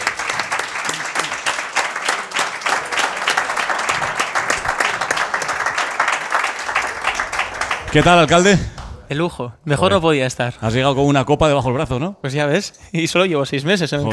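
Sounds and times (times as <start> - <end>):
audience applause: 0.0 - 8.9
speech: 7.9 - 14.1.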